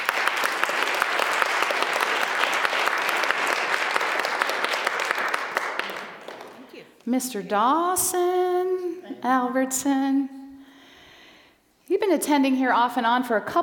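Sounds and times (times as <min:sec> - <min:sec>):
audience applause: 0:00.0 - 0:06.8
speech: 0:07.1 - 0:08.4, 0:09.2 - 0:10.4, 0:12.0 - 0:13.6.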